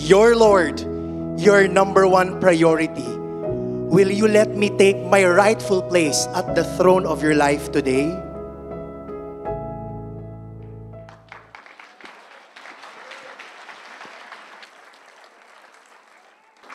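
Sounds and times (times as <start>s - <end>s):
speech: 0.1s - 3.2s, 3.9s - 8.3s
applause: 11.1s - 16.7s.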